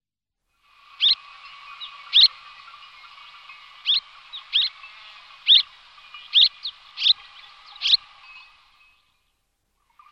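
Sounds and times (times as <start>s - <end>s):
Eurasian crag martin twittering: 0.9s - 8.6s.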